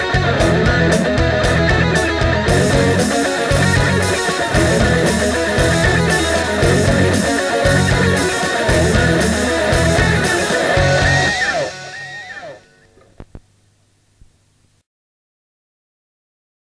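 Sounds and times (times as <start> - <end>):
two chords: 0.0 - 12.7.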